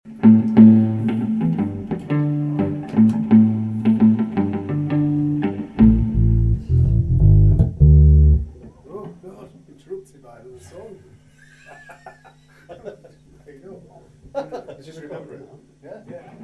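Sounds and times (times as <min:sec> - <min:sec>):
musical riff: 0:00.2 - 0:08.7
laughter: 0:11.3 - 0:13.5, 0:14.3 - 0:15.0.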